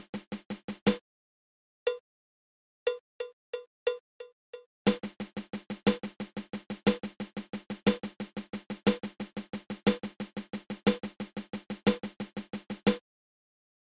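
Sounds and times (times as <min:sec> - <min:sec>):
paradiddle-diddle drum rudiment: 0:00.0 - 0:01.0, 0:04.9 - 0:13.0.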